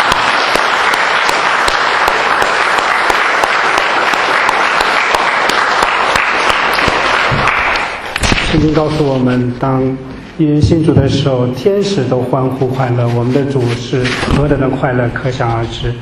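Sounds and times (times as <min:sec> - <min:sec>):
audience applause: 0:00.0 - 0:08.2
speech: 0:08.6 - 0:16.0.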